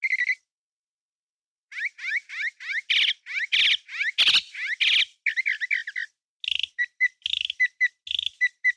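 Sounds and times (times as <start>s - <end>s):
bird chirping: 0.0s - 0.5s, 1.7s - 8.7s.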